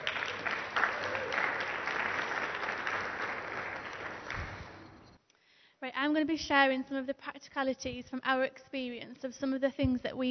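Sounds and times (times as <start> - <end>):
audience applause welcoming a speaker to the stage: 0.0 - 4.9
speech: 5.9 - 10.2.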